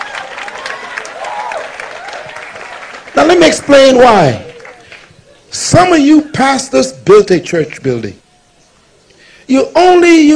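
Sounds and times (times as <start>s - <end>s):
audience clapping: 0.0s - 5.2s
speech: 3.4s - 4.4s, 5.6s - 8.2s, 9.5s - 10.3s.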